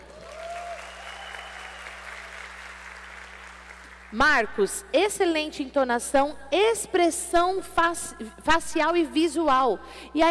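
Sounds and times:
audience applause: 0.0s - 4.0s
speech: 4.1s - 10.2s.

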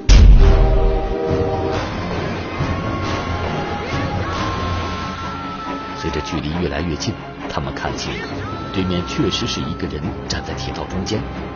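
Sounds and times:
train approaching: 0.0s - 5.0s
train horn: 0.6s - 4.6s
speech: 6.3s - 11.5s.

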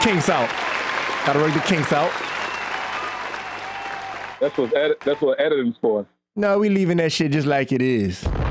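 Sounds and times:
speech: 0.0s - 2.3s, 4.4s - 8.4s
round of applause: 0.0s - 5.3s.

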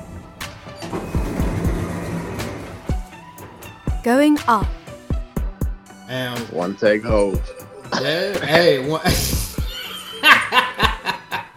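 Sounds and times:
elevator doors sliding shut: 0.0s - 3.9s
speech: 4.0s - 4.8s, 6.1s - 9.4s
laughter: 7.1s - 11.5s.

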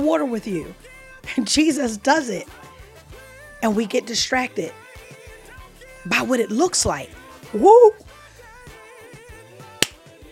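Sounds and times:
speech: 0.1s - 2.7s, 3.6s - 4.8s, 6.0s - 8.0s
delayed hand clap: 9.8s - 10.0s.

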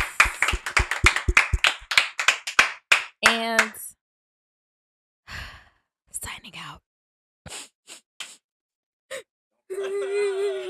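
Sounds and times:
round of applause: 0.0s - 3.8s.

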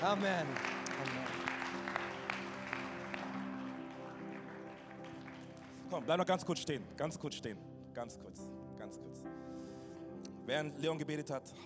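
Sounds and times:
speech: 0.0s - 1.6s, 5.9s - 9.7s, 10.4s - 11.6s
audience applause: 0.0s - 6.5s.

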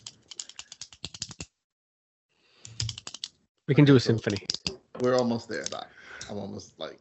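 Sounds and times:
ballpoint pen clicking: 0.0s - 1.5s, 2.6s - 3.3s, 4.2s - 5.8s
speech: 3.7s - 7.0s.

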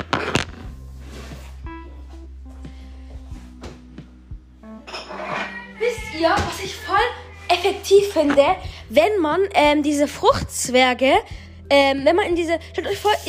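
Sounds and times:
glassware being picked up and set down: 4.9s - 5.6s
speech: 6.2s - 13.2s.

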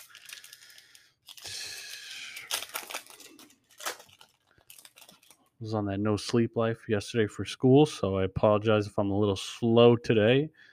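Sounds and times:
foil trading card booster pack being torn open: 0.0s - 5.4s
foil wrapper rustling and crackling: 0.0s - 5.6s
speech: 5.6s - 10.7s.

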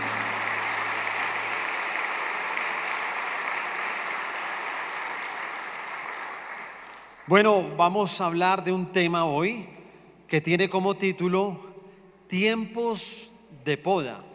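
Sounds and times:
audience applause: 0.0s - 7.2s
speech: 7.3s - 11.7s, 12.3s - 14.3s.

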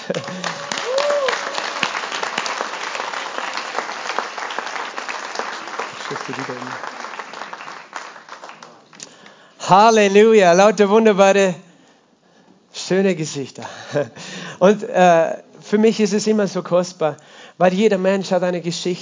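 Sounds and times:
laughter: 0.0s - 0.8s
audience applause: 0.0s - 9.3s
speech: 0.1s - 0.6s, 6.1s - 7.0s, 9.7s - 11.6s, 12.9s - 18.9s.

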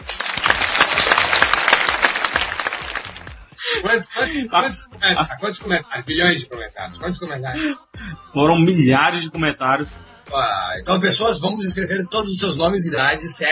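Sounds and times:
applause: 0.0s - 3.5s
laughter: 0.2s - 8.2s
speech: 3.8s - 13.5s.

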